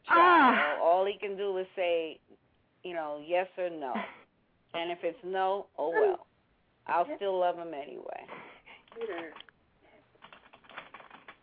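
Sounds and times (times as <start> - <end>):
speech: 1.1 - 6.3, 6.9 - 8.4, 9.0 - 9.4
typing on a keyboard: 10.2 - 11.4.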